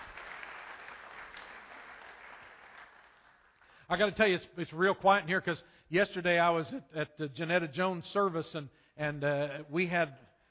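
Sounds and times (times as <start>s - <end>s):
audience applause: 0.0s - 3.6s
speech: 3.9s - 10.2s.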